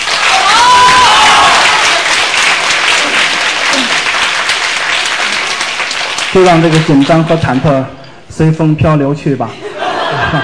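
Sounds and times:
audience applause at a Chinese crosstalk comedy show: 0:00.0 - 0:07.4
speech: 0:06.3 - 0:09.7
laughter: 0:09.5 - 0:10.4.

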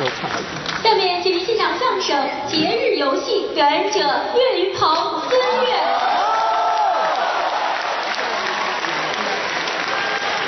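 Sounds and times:
audience applause: 0:00.0 - 0:00.8, 0:05.8 - 0:10.4
speech: 0:02.1 - 0:06.1.

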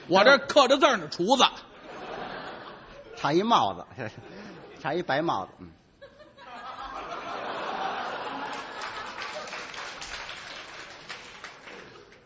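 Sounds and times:
speech: 0:00.1 - 0:01.7, 0:03.2 - 0:05.8
laughter: 0:01.8 - 0:04.8, 0:06.0 - 0:10.6
audience applause at a comedy performance: 0:07.4 - 0:12.2.

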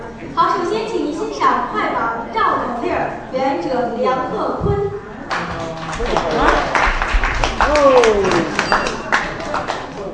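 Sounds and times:
speech: 0:00.2 - 0:04.9, 0:06.0 - 0:06.7, 0:07.7 - 0:08.9
audience applause: 0:05.3 - 0:10.1.

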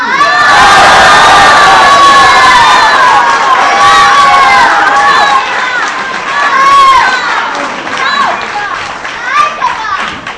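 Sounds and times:
audience cheering, whooping and heckling at a live comedy show: 0:00.0 - 0:08.3.

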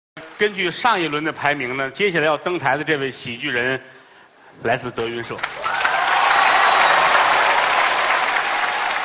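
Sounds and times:
speech: 0:00.4 - 0:04.0, 0:04.6 - 0:05.7
audience applause: 0:05.4 - 0:09.0.

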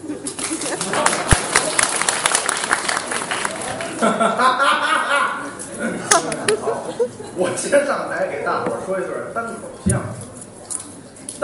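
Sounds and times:
laughter: 0:00.0 - 0:01.8, 0:03.5 - 0:07.8
audience applause: 0:00.0 - 0:04.3
speech: 0:04.0 - 0:04.8, 0:06.5 - 0:10.2.

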